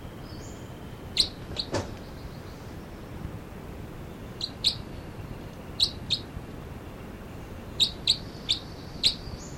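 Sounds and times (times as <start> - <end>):
two birds calling and chittering: 0.0 - 9.5.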